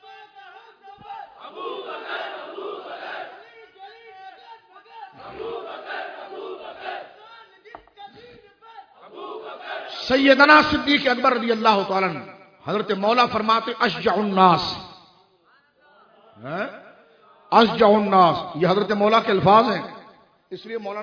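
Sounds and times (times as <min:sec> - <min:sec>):
crowd loudly chanting a religious slogan in praise of Hazrat Siddiq Akbar: 0:00.0 - 0:07.9, 0:08.8 - 0:10.5, 0:15.5 - 0:18.1
speech: 0:10.1 - 0:14.8, 0:16.4 - 0:16.8, 0:17.5 - 0:21.0.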